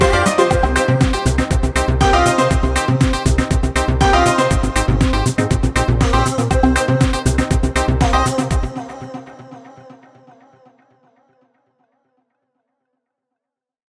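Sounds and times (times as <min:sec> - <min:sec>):
European electronic music: 0:00.0 - 0:09.5.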